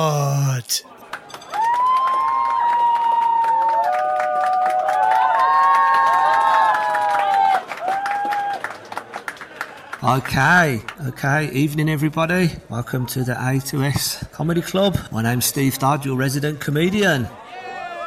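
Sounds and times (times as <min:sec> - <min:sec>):
speech: 0:00.0 - 0:00.9, 0:10.0 - 0:17.4
comedy club audience applause: 0:00.9 - 0:11.0
comedy club audience cheering: 0:01.5 - 0:08.8.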